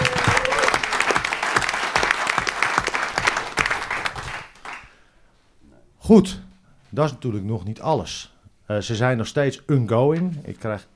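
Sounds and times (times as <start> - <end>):
loud audience applause: 0.0 - 5.0
speech: 6.1 - 10.9.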